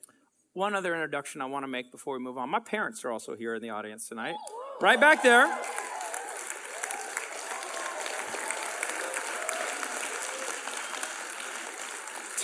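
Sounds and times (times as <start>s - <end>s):
speech: 0.6s - 5.8s
audience applause: 4.5s - 12.4s.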